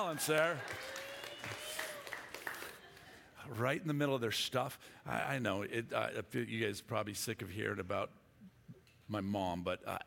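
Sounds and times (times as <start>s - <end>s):
speech: 0.0s - 1.6s, 3.4s - 8.2s, 9.1s - 10.0s
audience applause: 0.0s - 3.2s.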